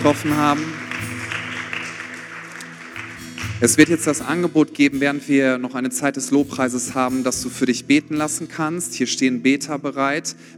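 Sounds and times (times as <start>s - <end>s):
speech: 0.0s - 1.2s, 3.6s - 10.5s
audience applause: 0.0s - 4.8s.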